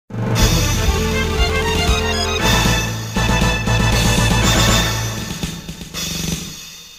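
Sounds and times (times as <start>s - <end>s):
mission complete jingle: 0.4s - 5.8s.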